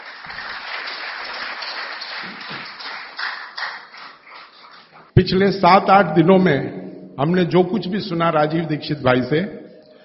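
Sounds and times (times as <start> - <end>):
audience applause: 0.0 - 4.9
speech: 5.3 - 9.6.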